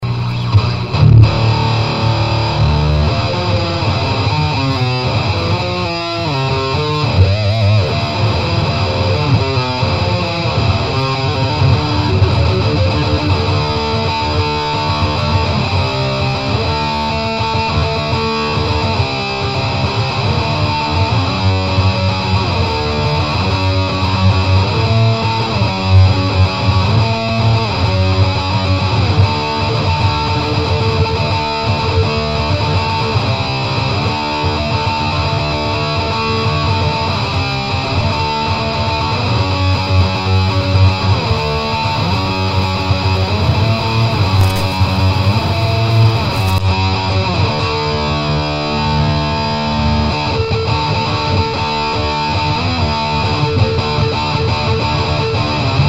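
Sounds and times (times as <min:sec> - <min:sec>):
guitar: 0:00.0 - 0:55.8.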